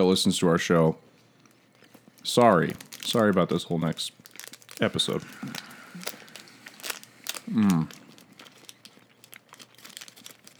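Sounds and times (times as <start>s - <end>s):
speech: 0.0s - 1.1s, 2.2s - 4.2s, 4.8s - 5.6s, 7.5s - 8.0s
candy bar wrapper crinkling open: 0.6s - 10.5s
person humming: 7.5s - 8.0s.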